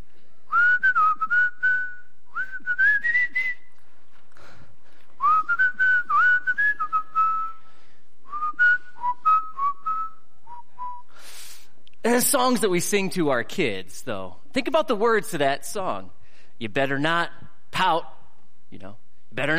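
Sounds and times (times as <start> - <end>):
person whistling a melody: 0.5 - 3.8, 5.2 - 11.3
speech: 12.2 - 18.1, 18.7 - 19.5.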